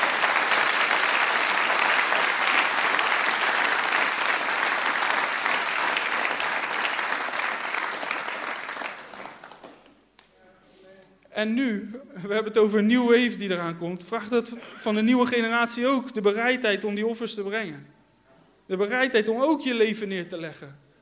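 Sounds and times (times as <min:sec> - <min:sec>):
audience applause: 0:00.0 - 0:10.0
speech: 0:11.4 - 0:17.9, 0:18.7 - 0:20.8.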